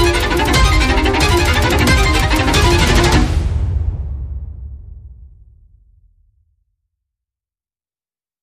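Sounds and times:
strings: 0.0s - 3.8s
percussion: 0.0s - 4.1s.

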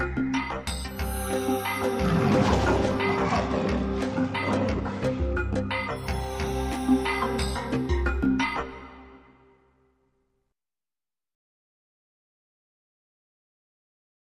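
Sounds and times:
disjointed foreboding animal sounds: 1.1s - 8.9s.

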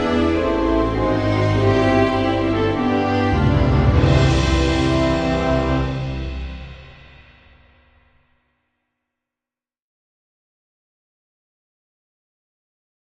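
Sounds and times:
national anthem music: 0.0s - 7.4s.

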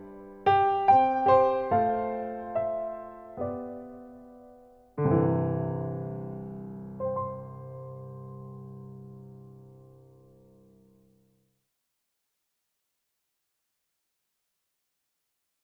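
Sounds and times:
introspective piano etude: 0.0s - 11.0s.

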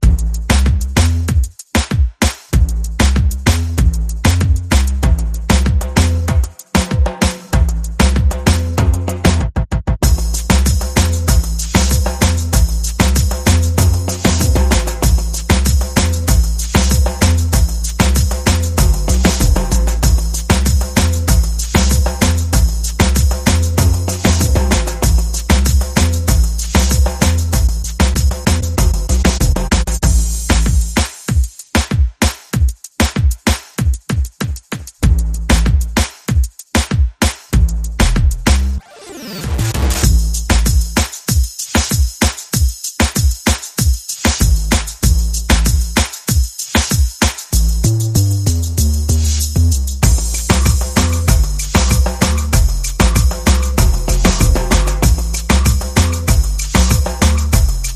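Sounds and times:
bass: 0.0s - 1.6s, 2.5s - 31.1s, 35.0s - 36.1s, 37.5s - 41.1s, 44.4s - 46.1s, 47.5s - 57.9s
percussion: 0.0s - 57.9s
sound effects: 38.8s - 40.1s.

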